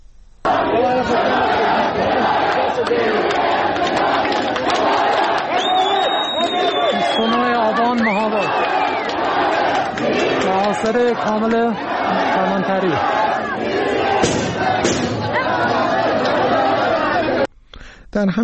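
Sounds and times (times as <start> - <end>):
large crowd chanting slogans and shouting: 0.4 - 17.5
whistling cries: 5.5 - 9.2
speech: 10.6 - 15.2, 18.1 - 18.4
gunfire: 14.0 - 15.4.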